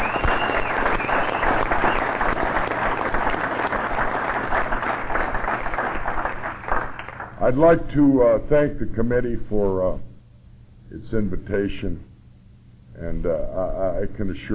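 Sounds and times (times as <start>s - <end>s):
audience applause: 0.0s - 7.4s
speech: 7.5s - 10.1s, 10.9s - 12.1s, 13.0s - 14.5s.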